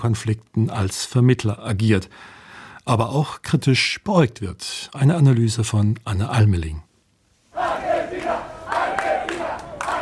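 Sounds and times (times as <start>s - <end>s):
speech: 0.0s - 6.9s
football fans cheering and chanting: 7.5s - 9.9s.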